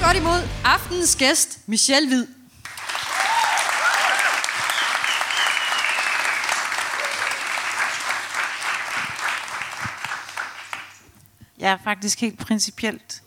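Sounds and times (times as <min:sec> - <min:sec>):
speech: 0:00.1 - 0:02.4, 0:11.7 - 0:13.2
crowd applauding: 0:02.7 - 0:11.0
cheers and whoops: 0:02.9 - 0:07.7.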